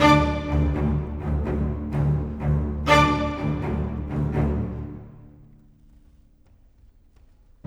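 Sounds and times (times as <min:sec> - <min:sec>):
cinematic orchestral strings: 0:00.0 - 0:06.0.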